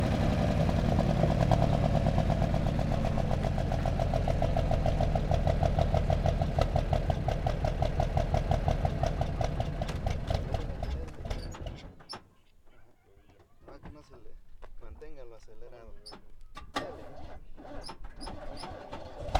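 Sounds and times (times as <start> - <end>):
car starting and stopping: 0.0 - 12.0, 16.6 - 19.3.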